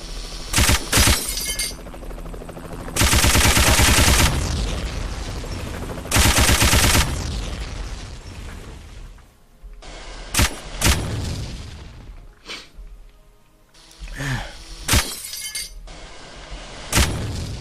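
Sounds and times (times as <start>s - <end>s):
machine gun fire: 0.5s - 1.4s, 3.0s - 4.6s, 6.1s - 7.2s, 10.3s - 11.2s, 16.2s - 17.5s.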